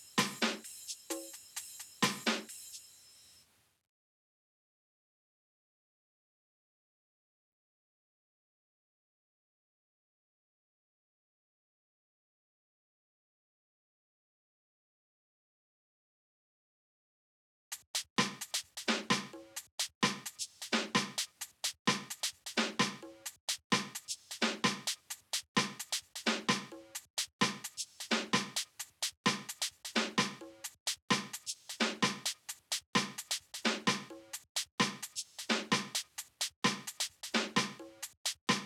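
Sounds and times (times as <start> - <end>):
drums: 0.0 - 3.3, 17.7 - 38.6.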